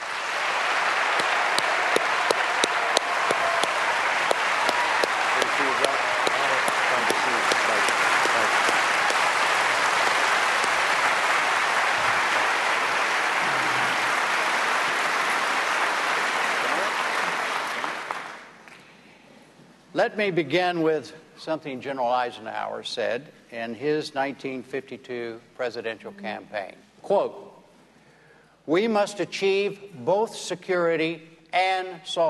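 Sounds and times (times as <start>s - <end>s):
audience applause welcoming candidates: 0.0s - 18.6s
speech: 20.0s - 27.5s, 28.7s - 32.2s.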